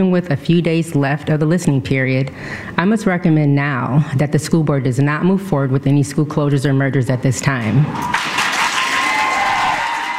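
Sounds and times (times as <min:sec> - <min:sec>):
speech: 0:00.0 - 0:08.4
meeting crowd applauding: 0:08.0 - 0:10.1.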